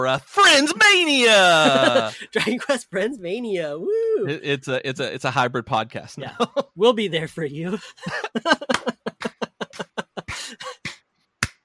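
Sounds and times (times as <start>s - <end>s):
speech: 0.0s - 11.0s
laughter: 1.4s - 2.8s, 6.2s - 6.8s, 7.6s - 10.9s
one person clapping: 8.5s - 11.6s.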